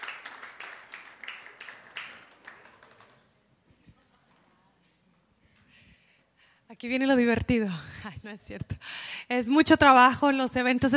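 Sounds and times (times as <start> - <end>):
audience applause: 0.0 - 3.4
speech: 6.8 - 10.9.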